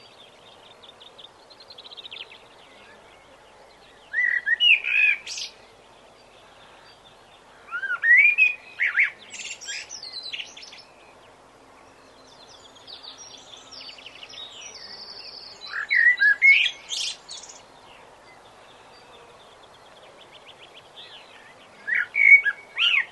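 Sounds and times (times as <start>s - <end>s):
common blackbird singing fluted whistles: 4.1s - 5.5s, 7.8s - 10.7s, 15.6s - 17.5s, 21.8s - 23.1s.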